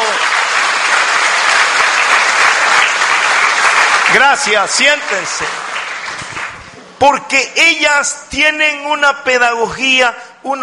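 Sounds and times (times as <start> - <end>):
audience applause: 0.0 - 6.8
speech: 4.1 - 5.6, 7.0 - 10.6.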